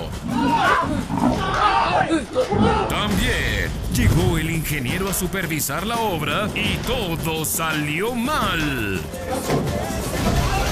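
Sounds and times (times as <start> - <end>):
leopard roaring and growling: 0.2 - 2.8
speech: 2.1 - 10.3.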